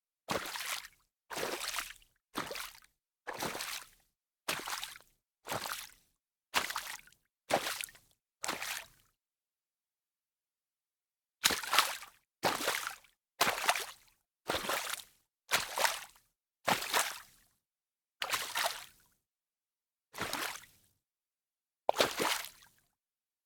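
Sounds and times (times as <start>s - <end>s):
walking in shallow water: 0.3s - 6.0s, 6.6s - 9.0s, 11.4s - 17.3s, 18.2s - 19.0s, 20.2s - 20.8s, 21.9s - 22.7s.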